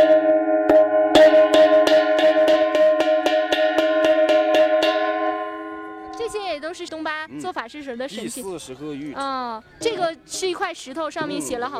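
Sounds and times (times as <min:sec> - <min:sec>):
small gong being struck: 0:00.0 - 0:06.9
speech: 0:07.4 - 0:11.7.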